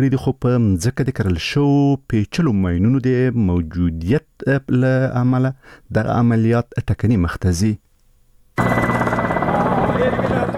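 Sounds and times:
speech: 0.0 - 7.9, 8.6 - 8.9
foreign forces' military combat helicopter in flight: 8.6 - 10.5.

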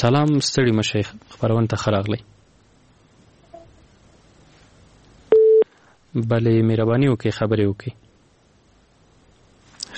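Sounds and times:
speech: 0.0 - 2.4, 6.1 - 8.0
telephone busy tone: 5.3 - 5.6.

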